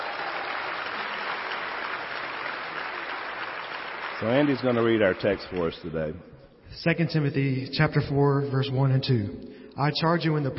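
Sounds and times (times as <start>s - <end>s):
audience applause: 0.0s - 6.0s
speech: 4.2s - 10.5s.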